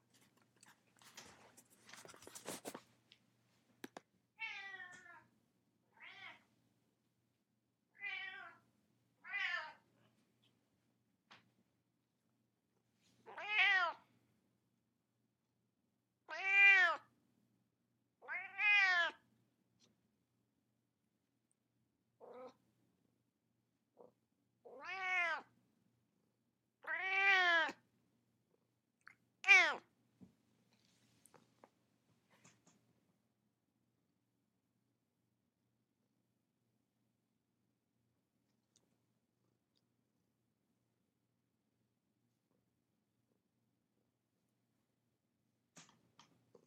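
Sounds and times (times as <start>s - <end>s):
cat meowing: 4.4s - 5.2s, 6.0s - 6.4s, 8.0s - 8.6s, 9.2s - 9.8s, 13.3s - 14.0s, 16.3s - 17.1s, 18.2s - 19.2s, 24.6s - 25.5s, 26.8s - 27.8s, 29.4s - 29.9s.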